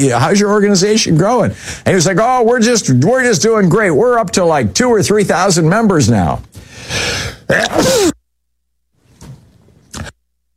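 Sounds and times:
speech: 0:00.0 - 0:08.1
sneeze: 0:07.5 - 0:08.2.

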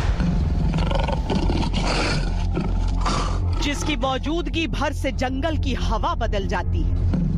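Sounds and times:
lion roaring: 0:00.2 - 0:04.0
speech: 0:03.9 - 0:07.3.

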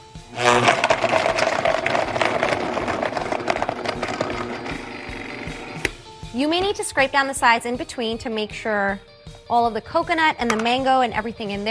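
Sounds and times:
blender blending a smoothie: 0:00.0 - 0:05.9
speech: 0:06.4 - 0:11.6.

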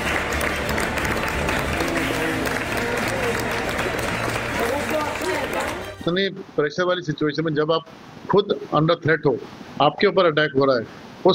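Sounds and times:
passengers applauding inside an airplane cabin: 0:00.0 - 0:06.2
speech: 0:06.0 - 0:11.3.

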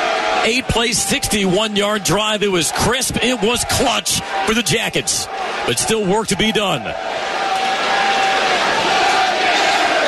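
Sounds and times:
stadium crowd chanting: 0:00.0 - 0:10.0
speech: 0:00.4 - 0:07.4.

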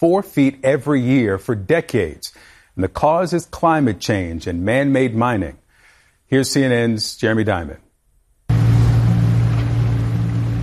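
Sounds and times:
speech: 0:00.0 - 0:05.6, 0:06.3 - 0:07.8
motorboat engine running on the Dead Sea: 0:08.5 - 0:10.6.

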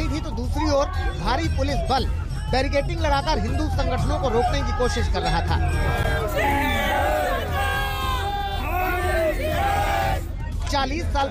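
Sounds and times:
dense noise: 0:00.0 - 0:11.2
speech: 0:00.8 - 0:07.2, 0:10.7 - 0:11.2
large crowd chanting in unison: 0:05.7 - 0:10.4.

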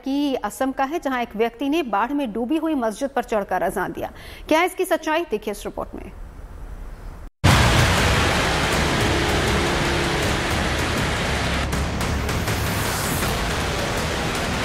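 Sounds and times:
speech: 0:00.0 - 0:06.2
heavy monsoon rain pouring: 0:07.4 - 0:14.6.

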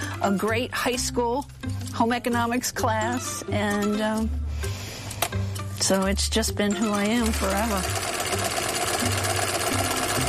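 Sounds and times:
speech: 0:00.2 - 0:04.7, 0:05.8 - 0:08.1
sewing machine zigzag-stitching die-cut letters onto a nameplate: 0:06.8 - 0:10.2.

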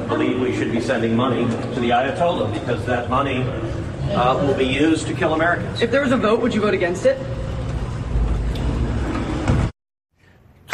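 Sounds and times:
speech: 0:00.2 - 0:07.4
elevator doors sliding shut: 0:07.4 - 0:09.7.

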